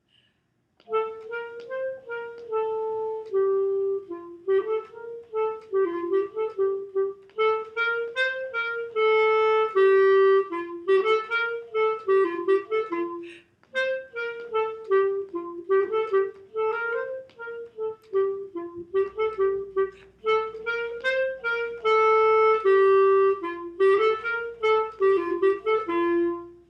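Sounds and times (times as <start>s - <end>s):
gavotte: 0.0s - 26.6s.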